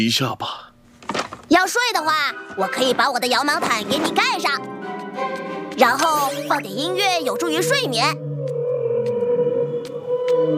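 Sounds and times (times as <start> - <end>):
speech: 0.0 - 0.6, 1.5 - 8.2
whale song: 7.4 - 10.5.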